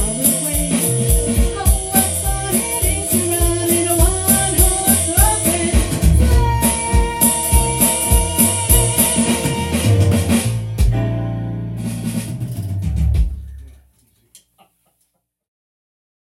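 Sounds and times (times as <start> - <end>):
Christmas song: 0.0 - 12.2.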